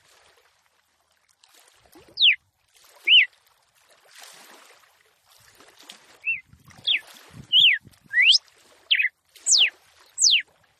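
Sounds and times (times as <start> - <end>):
red-cowled cardinal whistling: 2.2 - 2.4, 3.0 - 3.3, 6.2 - 10.4.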